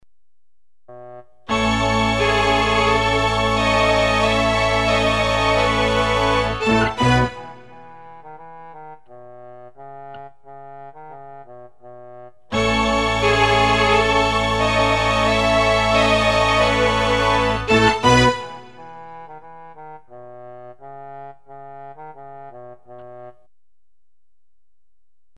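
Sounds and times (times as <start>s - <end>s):
strings: 1.5s - 8.2s, 12.5s - 19.1s.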